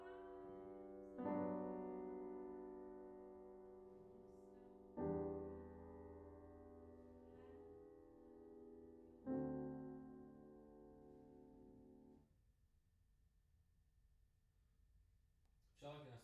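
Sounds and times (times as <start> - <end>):
piano in a room: 0.0 - 12.3.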